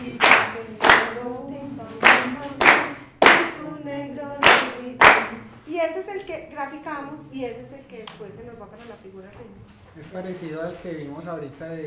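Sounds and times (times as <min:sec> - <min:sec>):
hands clapping a rhythm in a children's music lesson: 0:00.0 - 0:05.6, 0:08.0 - 0:08.4
speech: 0:05.8 - 0:11.8.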